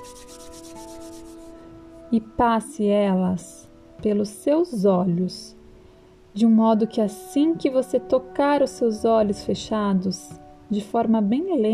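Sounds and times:
palms of hands rubbing briskly together: 0:00.0 - 0:01.6
speech: 0:02.1 - 0:05.6, 0:06.4 - 0:11.7.

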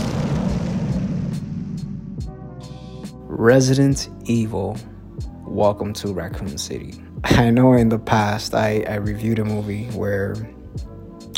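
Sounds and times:
bomb drop sound effect low roaring rumble: 0:00.0 - 0:03.0
speech: 0:03.4 - 0:04.9, 0:05.5 - 0:10.6.

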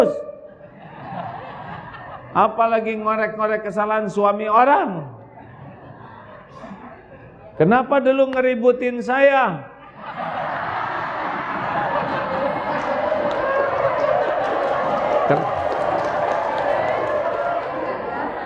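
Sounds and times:
speech: 0:00.0 - 0:00.2, 0:02.4 - 0:05.2, 0:07.6 - 0:10.3
scattered laughter: 0:00.5 - 0:02.4, 0:05.2 - 0:07.6, 0:09.8 - 0:15.2, 0:17.6 - 0:18.4
large audience applause: 0:10.2 - 0:18.4.

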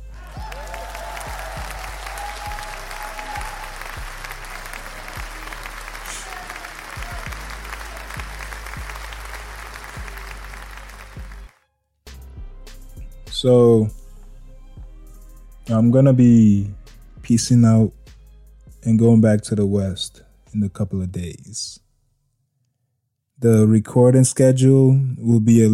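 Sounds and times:
audience applause: 0:00.0 - 0:11.5
speech: 0:13.4 - 0:14.0, 0:15.7 - 0:18.0, 0:18.8 - 0:21.8, 0:23.4 - 0:25.7.

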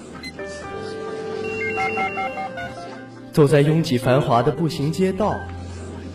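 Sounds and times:
telephone ringing: 0:01.4 - 0:03.0
speech: 0:01.9 - 0:05.6.

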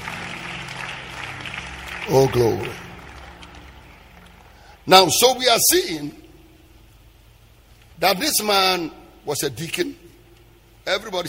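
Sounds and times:
audience applause: 0:00.0 - 0:04.8
speech: 0:02.1 - 0:02.8, 0:04.8 - 0:06.2, 0:08.0 - 0:10.0, 0:10.9 - 0:11.2.

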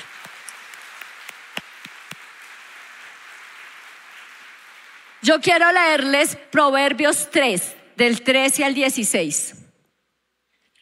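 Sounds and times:
applause: 0:00.0 - 0:05.7
speech: 0:05.2 - 0:09.6.

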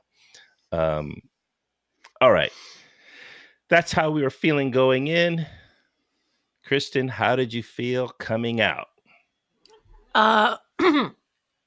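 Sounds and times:
speech: 0:00.7 - 0:01.3, 0:02.2 - 0:02.8, 0:03.7 - 0:05.6, 0:06.7 - 0:08.9, 0:10.1 - 0:11.2
person coughing after choking on a cheeseburger: 0:10.8 - 0:11.2.

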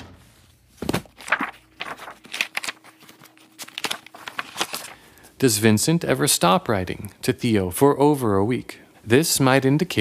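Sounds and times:
old paper letters rustling as they are rifled through: 0:00.8 - 0:05.3
speech: 0:05.4 - 0:09.9.

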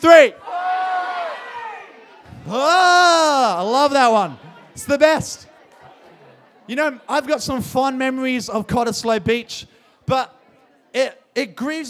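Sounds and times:
speech: 0:00.0 - 0:00.4, 0:02.5 - 0:05.5, 0:06.7 - 0:11.8
crowd shouting: 0:00.0 - 0:06.4.

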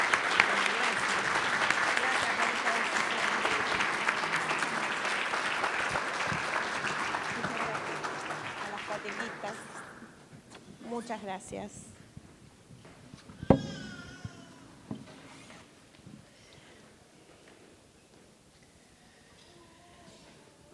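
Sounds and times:
audience applauding: 0:00.0 - 0:10.1
speech: 0:11.1 - 0:11.9.

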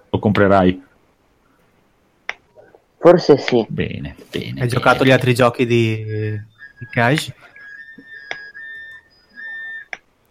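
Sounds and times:
speech: 0:00.2 - 0:00.9, 0:03.0 - 0:07.5
sharp clicks: 0:02.2 - 0:02.5, 0:07.1 - 0:10.1
electronic alarm tones: 0:04.7 - 0:10.0.

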